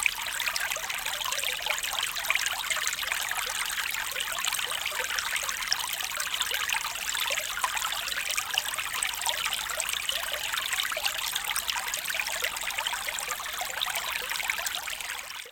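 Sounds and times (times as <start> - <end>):
quiet spring stream flowing: 0.0 - 15.5.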